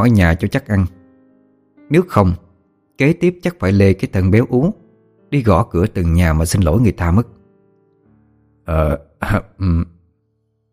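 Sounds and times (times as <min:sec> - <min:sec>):
speech: 0:00.0 - 0:01.0, 0:01.9 - 0:02.4, 0:03.0 - 0:07.4, 0:08.7 - 0:09.9
throat clearing: 0:09.2 - 0:10.0.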